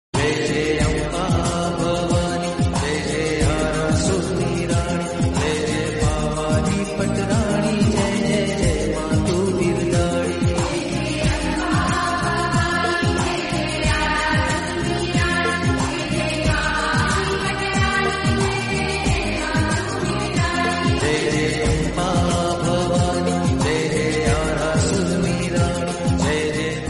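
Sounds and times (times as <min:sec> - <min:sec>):
Bhakti devotional music: 0:00.2 - 0:26.8.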